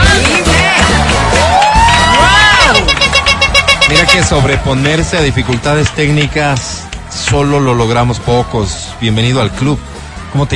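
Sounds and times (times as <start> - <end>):
crowd applauding: 0.0 - 8.3
crowd cheering and whooping: 0.1 - 5.8
speech: 4.0 - 10.5.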